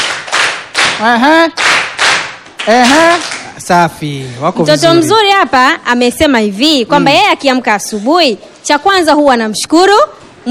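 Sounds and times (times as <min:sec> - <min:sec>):
audience clapping for a child at a school: 0:00.0 - 0:03.6
speech: 0:01.0 - 0:01.7, 0:02.6 - 0:10.4.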